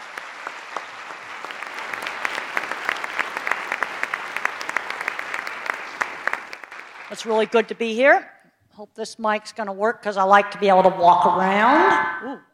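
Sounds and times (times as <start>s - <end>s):
audience applause welcoming a speaker onto the stage: 0.0s - 7.4s
speech: 7.1s - 12.5s.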